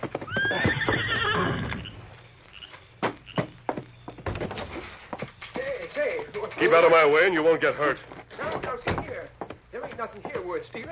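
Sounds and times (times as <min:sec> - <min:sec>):
hooves clip-clopping: 0:00.0 - 0:10.8
horse neighing: 0:00.2 - 0:03.4
speech: 0:06.6 - 0:08.1, 0:10.0 - 0:10.8.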